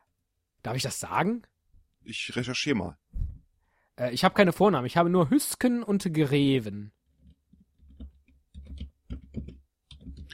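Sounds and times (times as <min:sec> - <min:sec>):
speech: 0:00.6 - 0:03.0, 0:04.0 - 0:07.0
surname being typed on a computer keyboard: 0:07.2 - 0:10.3.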